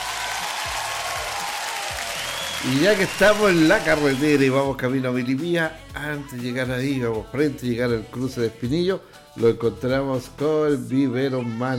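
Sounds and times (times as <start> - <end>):
audience applause: 0.0 - 4.4
speech: 2.6 - 11.7.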